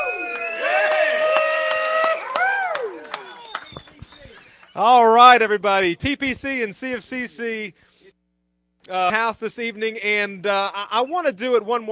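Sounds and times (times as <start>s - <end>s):
crowd giving a rebel yell: 0.0s - 4.4s
scattered claps: 0.2s - 5.4s
speech: 4.8s - 7.9s, 8.8s - 11.9s.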